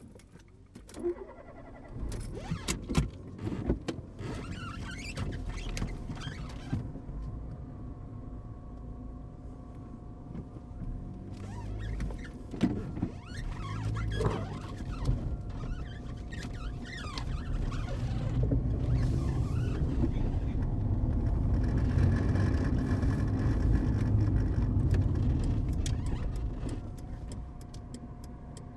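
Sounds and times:
Fiat Palio starting and driving away: 0.8s - 28.7s.

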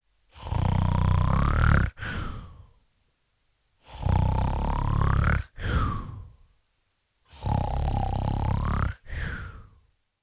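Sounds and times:
person snoring: 0.3s - 2.7s, 3.8s - 6.4s, 7.3s - 9.8s.

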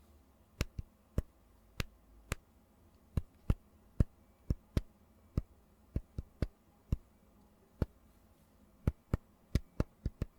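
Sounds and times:
finger tapping on phone: 0.6s - 2.4s, 3.2s - 7.1s, 8.9s - 10.3s.

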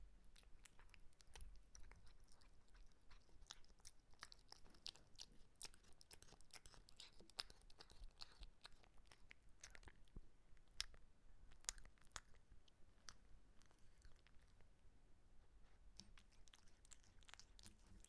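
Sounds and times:
cat eating with crunching and chewing clicks: 0.3s - 14.7s, 15.9s - 18.0s.

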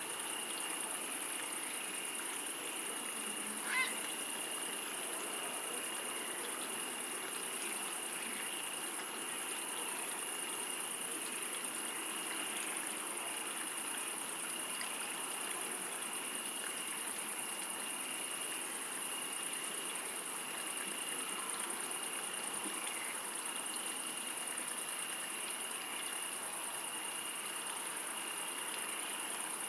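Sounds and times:
crickets calling in chorus in the Camargue: 0.0s - 29.6s.

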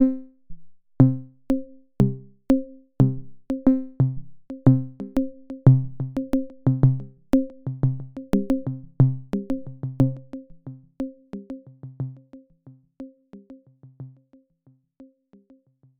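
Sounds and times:
90 bpm sine tom melody loop: 0.0s - 12.4s.

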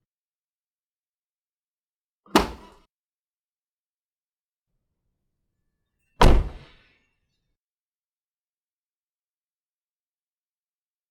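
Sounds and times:
car door opening and closing: 6.2s - 6.6s.

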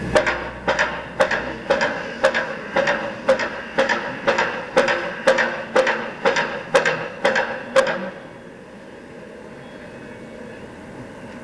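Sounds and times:
hammer construction noises: 0.1s - 8.2s.

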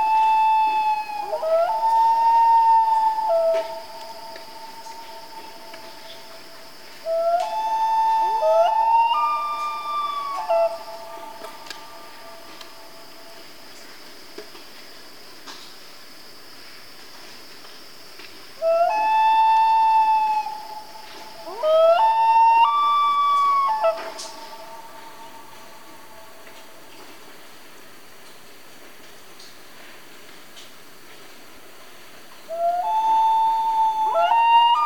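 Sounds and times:
Canadian loons in a family calling: 0.0s - 13.9s, 18.6s - 27.0s, 32.5s - 34.8s.

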